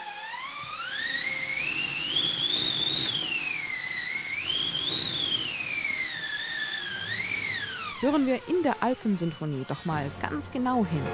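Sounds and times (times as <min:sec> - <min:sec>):
wind machine drum rubbing stretched cloth: 0:00.0 - 0:11.1
speech: 0:08.0 - 0:11.1.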